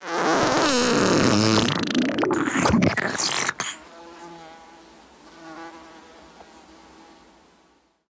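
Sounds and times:
fart: 0.0s - 3.9s.

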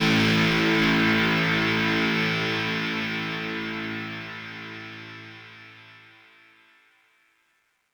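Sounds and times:
guitar one-shot: 0.0s - 5.9s.

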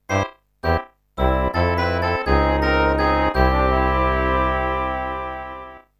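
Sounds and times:
game over jingle: 0.1s - 5.8s.

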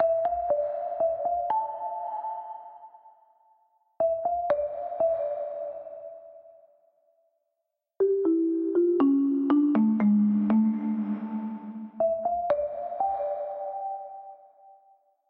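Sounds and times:
marimba: 0.0s - 2.9s, 4.0s - 6.4s, 8.0s - 14.4s.

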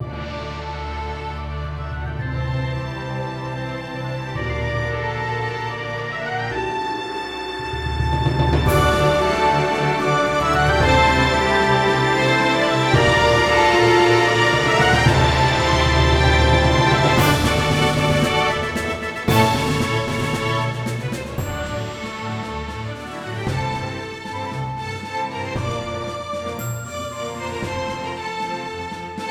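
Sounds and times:
heroic soundscape: 0.0s - 29.2s.

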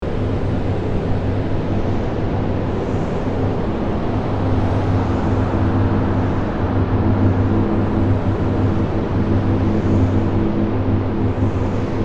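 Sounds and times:
fan chamber ambience: 0.0s - 12.0s.

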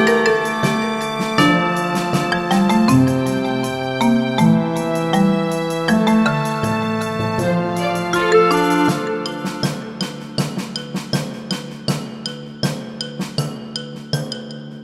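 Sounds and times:
card battle theme music: 0.0s - 11.4s.

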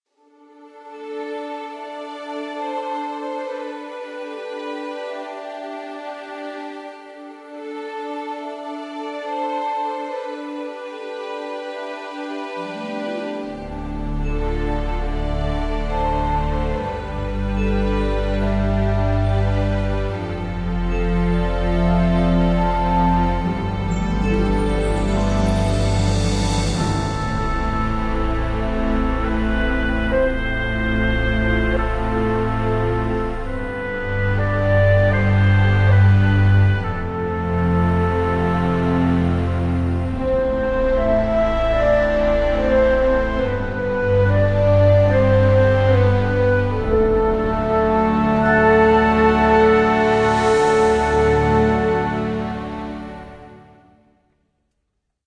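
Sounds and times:
map background music: 0.1s - 54.4s.

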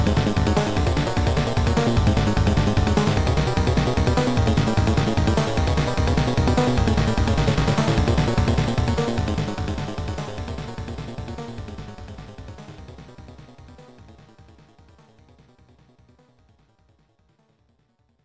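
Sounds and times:
middle boss battle game music: 0.0s - 12.8s.

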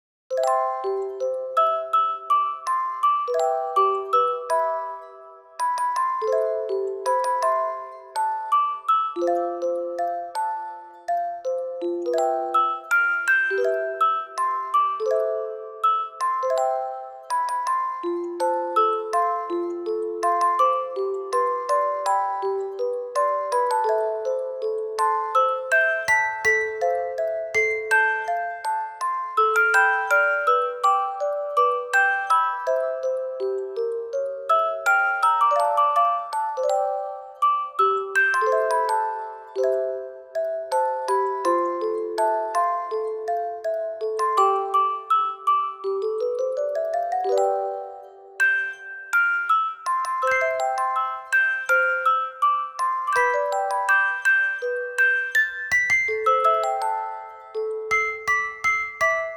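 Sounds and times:
music box arrangement: 0.3s - 59.3s.

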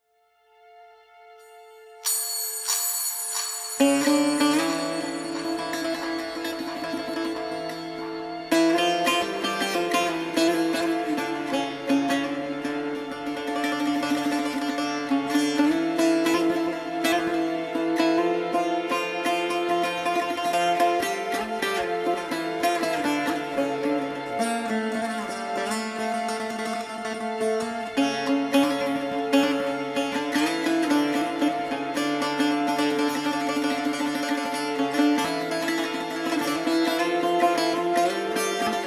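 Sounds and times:
Middle Eastern music: 0.0s - 38.8s.

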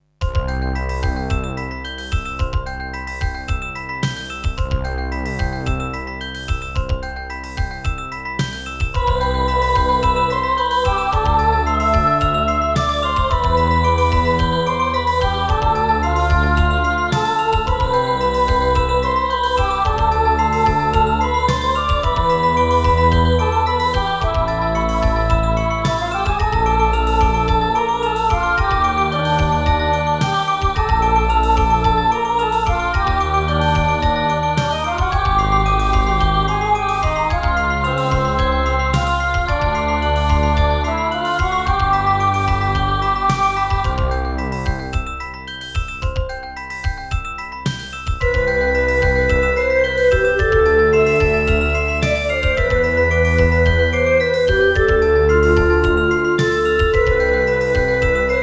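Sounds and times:
synthesizer: 0.2s - 58.4s.

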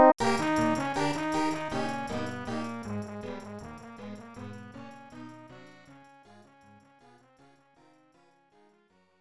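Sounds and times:
casino losing jingle: 0.2s - 5.5s.

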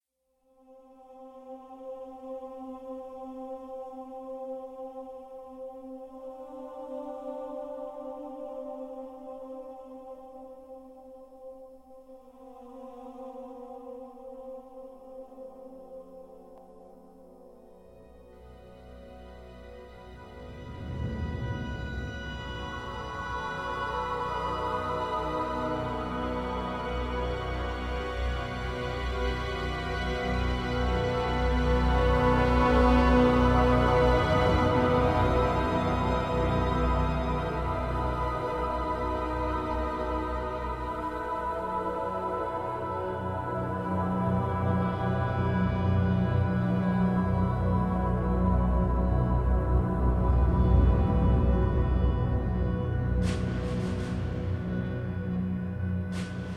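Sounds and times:
deep mysterious ambient music: 0.9s - 56.5s.

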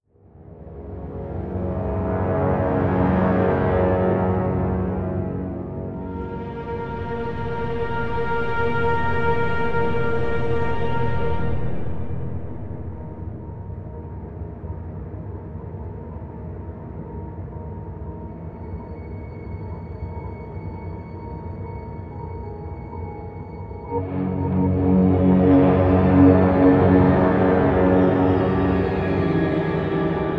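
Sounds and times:
suspense music: 0.5s - 30.3s.

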